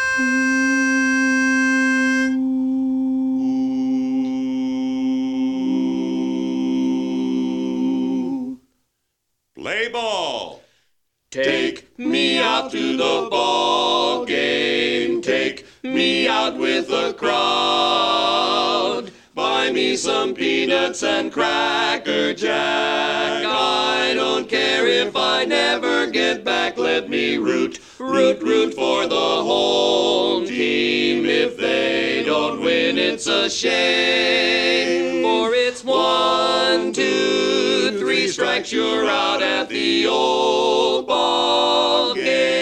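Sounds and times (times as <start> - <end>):
a cappella lead singing: 0.1 - 8.8, 11.3 - 42.6.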